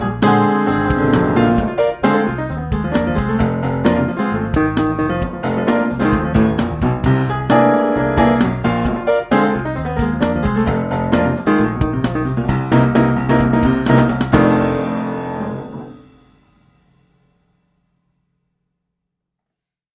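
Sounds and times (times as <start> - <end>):
funk groove in F: 0.0 - 14.8.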